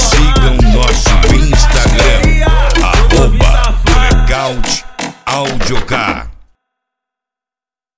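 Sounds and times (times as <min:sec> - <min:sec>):
funk house remix: 0:00.0 - 0:06.4.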